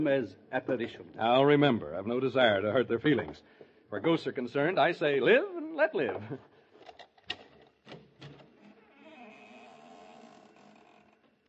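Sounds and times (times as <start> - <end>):
speech: 0.0 - 6.5
front door hinge squeaking: 8.5 - 11.4.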